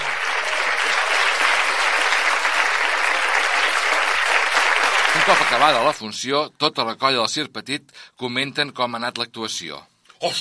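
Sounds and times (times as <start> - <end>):
loud applause: 0.0 - 6.0
speech: 5.3 - 10.4.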